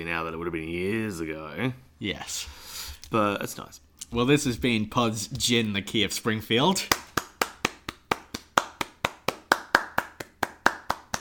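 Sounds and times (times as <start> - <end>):
speech: 0.0 - 7.0
polite applause of crisp hand claps: 6.7 - 11.1.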